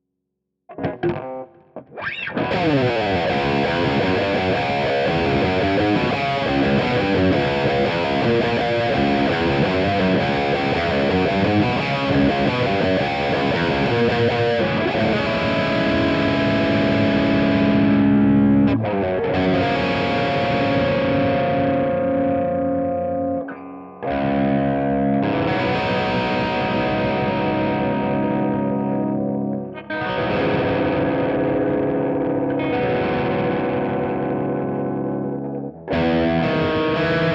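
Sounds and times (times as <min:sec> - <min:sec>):
drop C riffing on Schecter SLS Elite electric guitar: 0:00.7 - 0:37.3.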